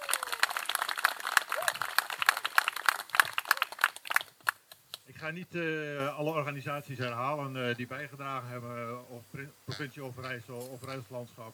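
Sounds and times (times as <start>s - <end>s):
crowd applause: 0.0s - 4.6s
speech: 5.2s - 11.5s.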